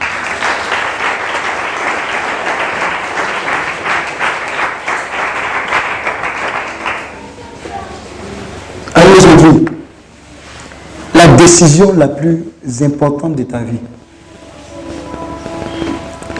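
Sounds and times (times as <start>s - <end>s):
church congregation clapping and cheering in praise of God: 0.0s - 7.4s
speech: 11.4s - 14.0s.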